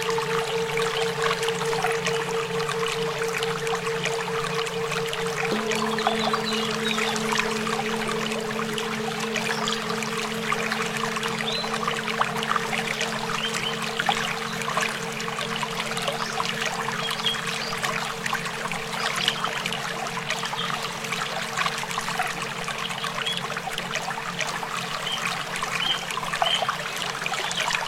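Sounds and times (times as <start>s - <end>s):
singing bowls ringing in a bowl sound massage: 0.0s - 18.1s
running water: 0.0s - 27.8s.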